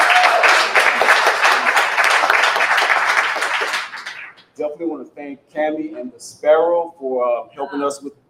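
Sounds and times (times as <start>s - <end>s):
audience applause: 0.0s - 4.4s
speech: 5.0s - 8.2s.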